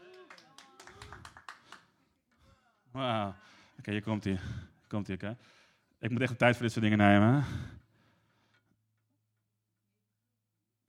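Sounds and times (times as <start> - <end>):
audience applause: 0.0 - 1.8
speech: 2.9 - 7.8.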